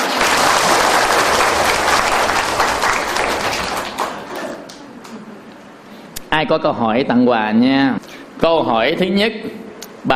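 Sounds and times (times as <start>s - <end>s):
crowd applauding: 0.0s - 5.3s
speech: 6.4s - 10.1s.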